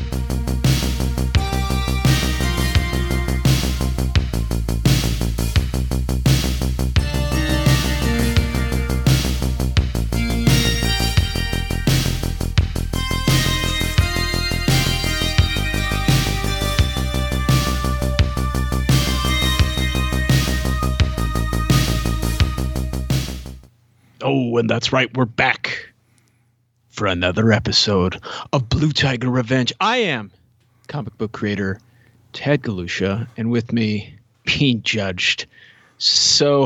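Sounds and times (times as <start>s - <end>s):
intro music: 0.0s - 23.7s
speech: 24.6s - 25.8s, 27.0s - 31.8s, 32.4s - 36.6s.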